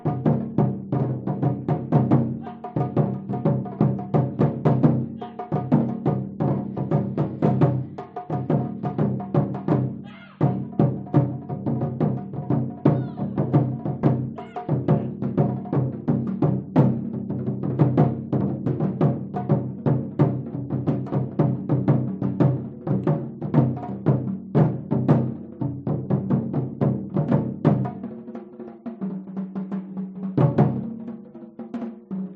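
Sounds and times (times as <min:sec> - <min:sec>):
Japanese taiko drums performance: 0:00.0 - 0:32.3
people chanting: 0:02.4 - 0:02.9, 0:05.1 - 0:05.7, 0:10.0 - 0:10.6, 0:12.8 - 0:13.5, 0:14.3 - 0:15.3.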